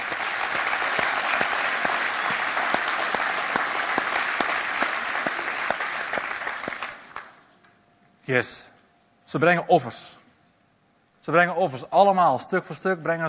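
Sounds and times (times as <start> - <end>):
audience applause: 0.0 - 7.4
speech: 8.3 - 8.7, 9.3 - 10.2, 11.2 - 13.2.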